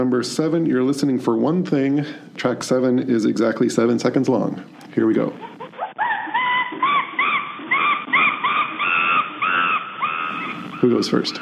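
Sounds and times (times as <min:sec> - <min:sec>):
speech: 0:00.0 - 0:05.5, 0:10.8 - 0:11.3
chimpanzee calls: 0:05.2 - 0:11.3.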